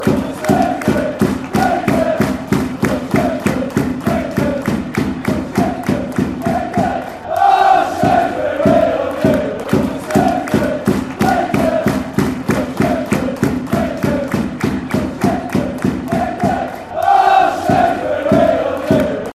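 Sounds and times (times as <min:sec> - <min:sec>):
football fans chanting: 0:00.0 - 0:19.3.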